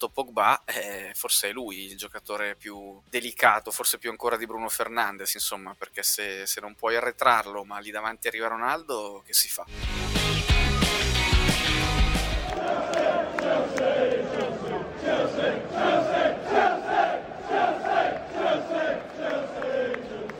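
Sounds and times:
speech: 0.0 - 12.0
football fans chanting: 12.4 - 20.3.

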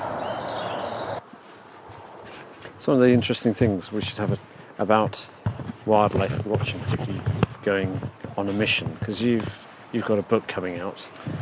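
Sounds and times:
birds' dusk chorus: 0.0 - 1.2
speech: 2.8 - 11.4.

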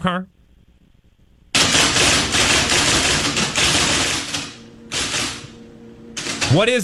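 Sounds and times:
typewriter keys clacking: 1.6 - 5.5, 6.2 - 6.6.

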